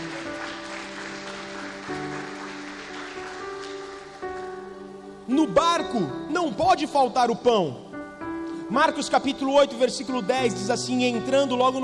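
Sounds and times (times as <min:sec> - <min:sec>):
audience applause: 0:00.0 - 0:04.4
speech: 0:05.3 - 0:07.8, 0:08.7 - 0:11.8.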